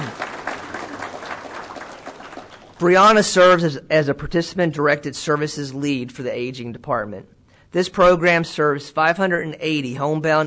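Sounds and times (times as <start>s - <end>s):
audience applause honoring Employee of the Year at an agency award ceremony: 0.0s - 2.8s
speech: 2.8s - 10.4s.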